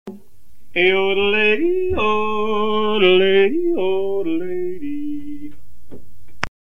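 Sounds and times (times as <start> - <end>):
person yodeling: 0.8 - 5.5.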